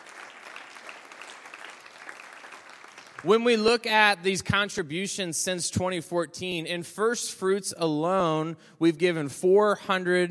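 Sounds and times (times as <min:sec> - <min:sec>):
audience hand clapping: 0:00.0 - 0:03.8
speech: 0:03.2 - 0:10.3.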